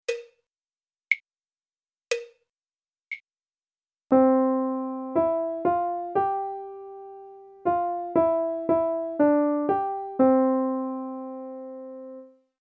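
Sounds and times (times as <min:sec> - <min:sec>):
melody: 0:04.1 - 0:12.3.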